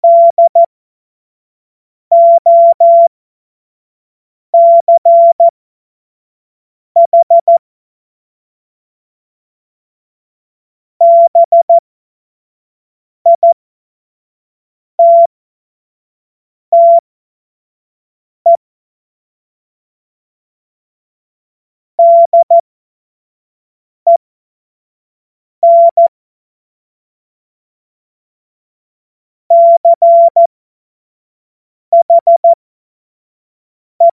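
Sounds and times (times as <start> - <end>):
CW Morse code beeps: 0.0 - 0.7, 2.1 - 3.1, 4.6 - 5.5, 7.0 - 7.6, 11.0 - 11.8, 15.0 - 15.3, 16.8 - 17.0, 22.0 - 22.6, 25.6 - 26.1, 29.5 - 30.5, 31.9 - 32.6, 34.0 - 34.1.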